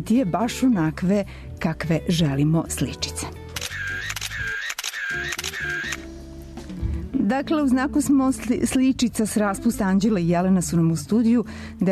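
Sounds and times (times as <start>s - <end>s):
speech: 0.0s - 3.4s, 7.3s - 11.9s
camera shutter clicks: 3.5s - 6.1s.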